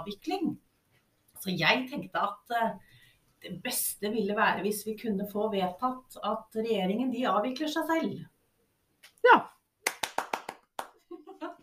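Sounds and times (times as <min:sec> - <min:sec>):
speech: 0:00.0 - 0:00.7, 0:01.4 - 0:08.3, 0:09.2 - 0:09.5
applause: 0:09.9 - 0:11.0.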